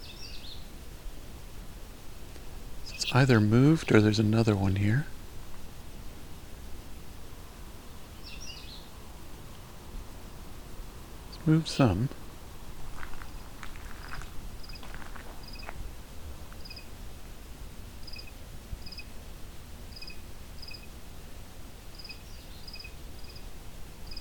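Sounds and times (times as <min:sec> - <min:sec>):
cricket chirping: 0:02.8 - 0:04.2, 0:13.2 - 0:15.8, 0:16.6 - 0:16.9, 0:18.0 - 0:19.1, 0:19.9 - 0:20.9, 0:21.9 - 0:23.5
speech: 0:03.0 - 0:05.2, 0:11.5 - 0:12.2.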